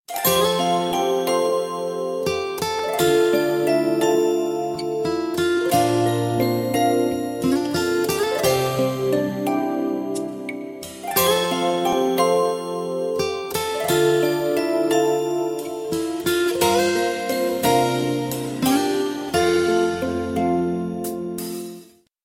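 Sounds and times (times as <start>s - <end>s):
cute melody: 0.1s - 21.8s.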